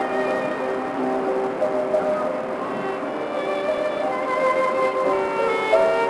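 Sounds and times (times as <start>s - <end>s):
violin: 0.0s - 6.0s.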